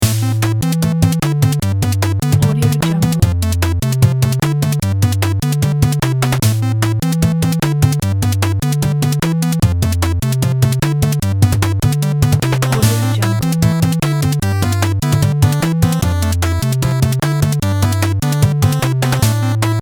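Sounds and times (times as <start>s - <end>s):
8-bit game music: 0.0s - 19.8s.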